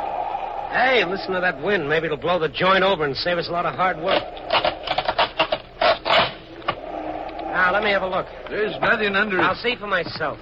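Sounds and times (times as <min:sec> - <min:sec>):
speech: 0:00.7 - 0:04.8, 0:07.7 - 0:10.4
wooden floorboard creaking as it is pried up: 0:04.0 - 0:08.6.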